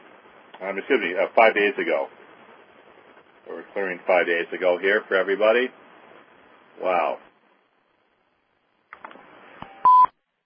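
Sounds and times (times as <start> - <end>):
speech: 0.6 - 2.2, 3.5 - 5.8, 6.8 - 7.3
electronic beep: 9.6 - 10.1.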